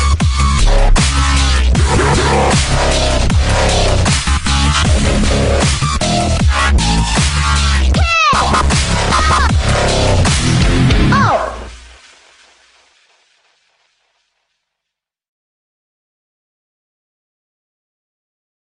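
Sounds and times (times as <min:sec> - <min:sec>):
dubstep version of a hardcore song: 0:00.0 - 0:12.0.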